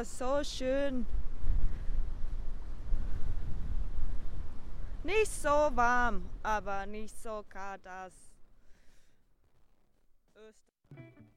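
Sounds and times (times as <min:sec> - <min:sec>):
speech: 0:00.0 - 0:01.2, 0:05.0 - 0:08.3, 0:10.4 - 0:11.3
strong wind buffeting the microphone: 0:00.0 - 0:07.6.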